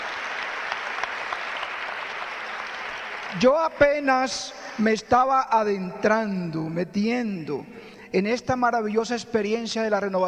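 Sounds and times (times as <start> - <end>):
audience applause: 0.0 - 3.7
speech: 3.3 - 10.2.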